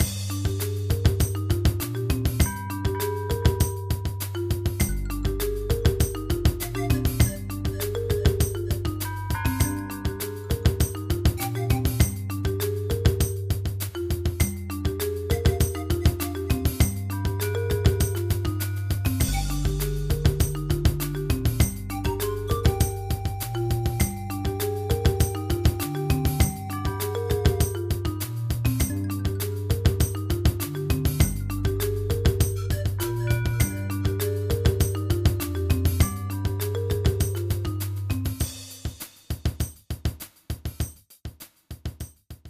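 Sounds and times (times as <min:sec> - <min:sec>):
tribal groove: 0:00.0 - 0:42.4.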